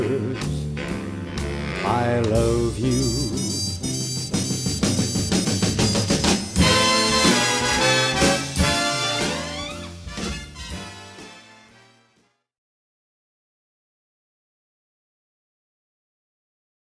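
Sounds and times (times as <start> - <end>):
orchestra: 0.0 - 12.3.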